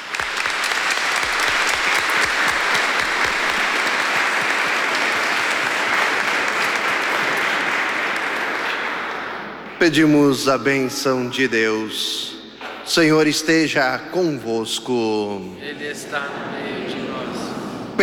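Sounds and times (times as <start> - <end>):
applause welcoming people: 0.0 - 10.2
speech: 9.8 - 12.3, 12.9 - 17.0
laughter: 15.6 - 18.0.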